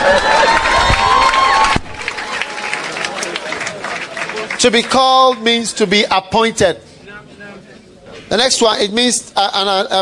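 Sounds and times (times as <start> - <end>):
loud cheering and whooping voices: 0.0 - 3.8
crowd applause: 0.0 - 5.5
speech: 4.6 - 6.9, 8.3 - 9.9.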